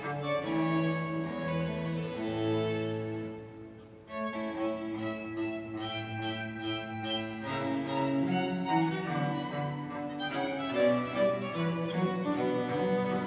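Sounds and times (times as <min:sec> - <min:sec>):
staccato violin sonata in E flat major: 0:00.0 - 0:13.2.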